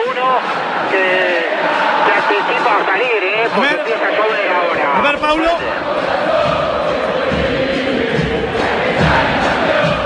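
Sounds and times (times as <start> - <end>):
River football fans murmuring in stadium: 0.0 - 10.0
speech: 2.5 - 6.3.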